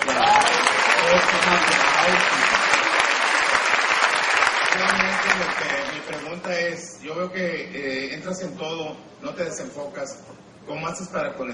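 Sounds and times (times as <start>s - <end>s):
audience applause: 0.0s - 6.5s
speech: 1.3s - 2.4s, 6.0s - 11.5s.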